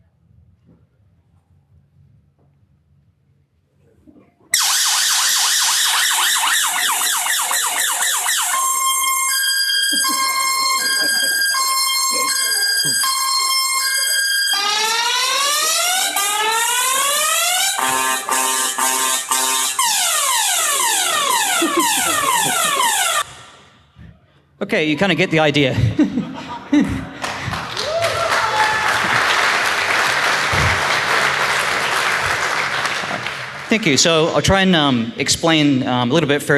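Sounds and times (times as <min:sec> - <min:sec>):
loud car security alarm siren in siren mode: 0:04.6 - 0:23.6
laughter: 0:09.3 - 0:17.4, 0:20.9 - 0:23.3, 0:25.0 - 0:33.4
speech: 0:24.7 - 0:26.0, 0:33.7 - 0:36.5.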